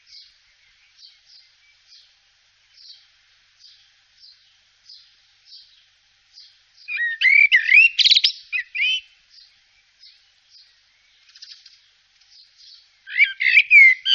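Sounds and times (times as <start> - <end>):
Eurasian blackbird chattering: 6.9 - 9.1, 12.4 - 14.1.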